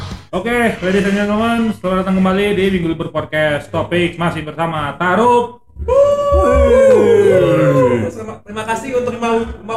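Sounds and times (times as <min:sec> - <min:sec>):
speech: 0:00.3 - 0:09.7
dog howling: 0:05.8 - 0:08.2.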